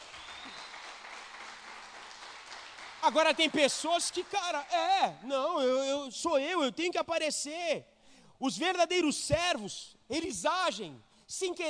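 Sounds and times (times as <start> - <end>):
church congregation clapping during a Portuguese-language service: 0.0 - 5.1
speech: 3.0 - 11.6.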